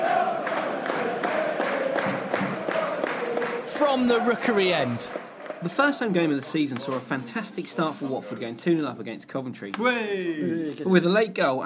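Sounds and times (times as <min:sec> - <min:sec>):
crowd cheering: 0:00.0 - 0:06.2
applause: 0:00.0 - 0:06.5
speech: 0:03.8 - 0:11.6.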